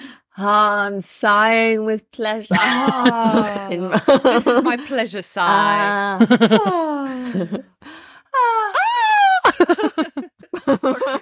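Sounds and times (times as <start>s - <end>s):
speech: 0.4s - 7.7s
laughter: 2.5s - 5.0s, 6.2s - 7.7s, 9.4s - 11.2s
person shrieking: 8.4s - 9.5s.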